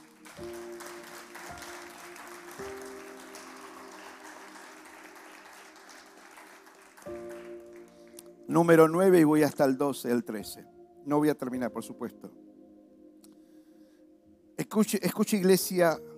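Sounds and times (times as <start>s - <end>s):
audience applause: 0.0s - 8.2s
sustained organ-like chords: 0.0s - 14.9s
speech: 8.5s - 12.4s, 14.7s - 16.1s.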